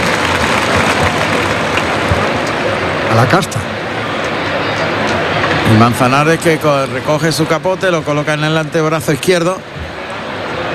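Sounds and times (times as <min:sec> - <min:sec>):
bullring crowd ovation: 0:00.0 - 0:06.6
speech: 0:03.2 - 0:03.8, 0:05.7 - 0:09.9.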